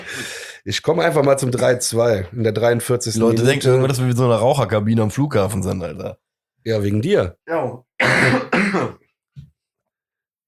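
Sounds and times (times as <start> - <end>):
speech: 0.6 - 9.0
coughing fit: 8.0 - 9.1.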